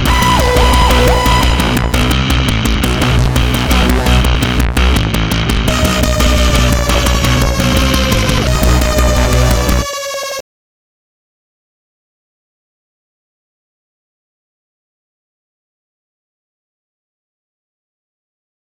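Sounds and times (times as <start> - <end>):
ambient music loop: 0.0 - 10.4.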